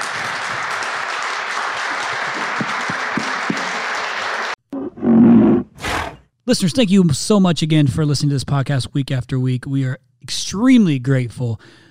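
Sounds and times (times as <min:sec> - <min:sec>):
audience applause: 0:00.0 - 0:04.6
speech: 0:06.5 - 0:11.8.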